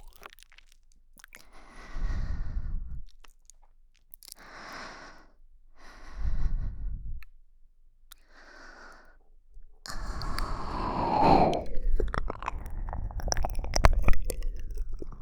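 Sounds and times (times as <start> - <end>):
slow breathing: 1.5 - 3.1, 4.4 - 7.3, 8.2 - 15.1.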